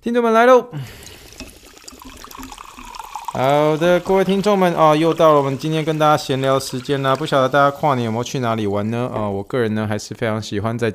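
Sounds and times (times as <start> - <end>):
speech: 0.0 - 1.0, 3.4 - 10.9
sparkling water fizzing and bubbling: 0.8 - 9.5.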